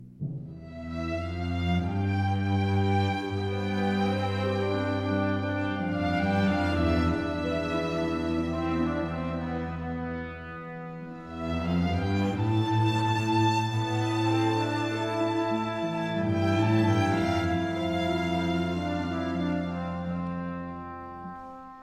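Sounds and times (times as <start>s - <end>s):
orchestra: 0.0s - 21.8s.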